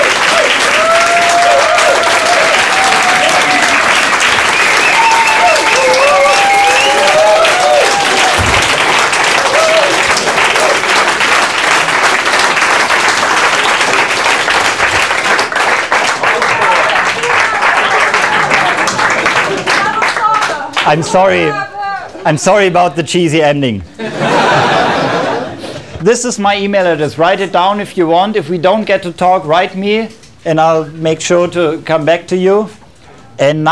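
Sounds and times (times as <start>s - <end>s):
audience whooping and cheering: 0.0s - 12.4s, 16.2s - 21.9s
thunderous audience applause: 0.0s - 21.6s
speech: 20.9s - 21.6s, 22.2s - 24.2s, 26.0s - 32.8s, 33.4s - 33.7s
laughter: 24.0s - 26.0s.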